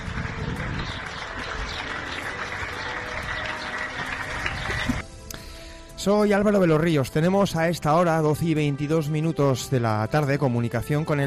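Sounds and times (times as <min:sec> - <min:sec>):
neighbours applauding: 0:00.0 - 0:05.0
speech: 0:06.0 - 0:11.2.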